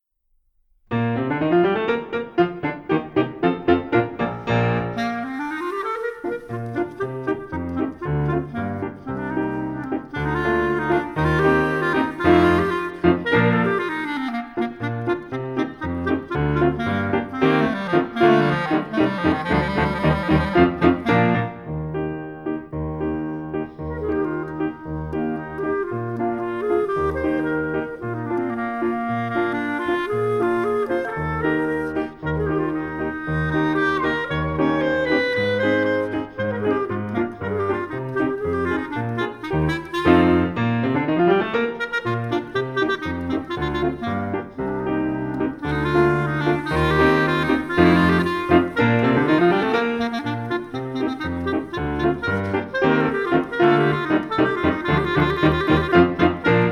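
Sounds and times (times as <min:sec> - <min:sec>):
skilful instrumental solo: 0:00.9 - 0:56.7.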